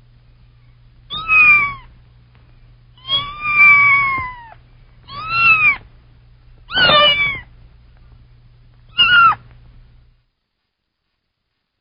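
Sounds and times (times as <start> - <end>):
faint low steady hum: 0.0 - 11.7
kitten meowing: 1.1 - 1.9, 3.0 - 5.9, 6.7 - 7.5, 8.9 - 9.4.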